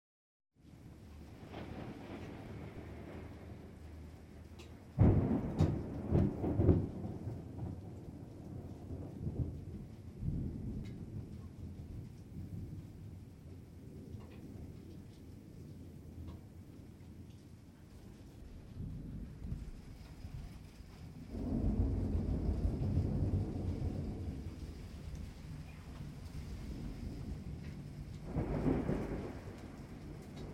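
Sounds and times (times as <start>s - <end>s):
calm rain outside the house window: 0.6s - 30.5s
thunder rolling: 1.2s - 15.2s, 18.4s - 30.5s.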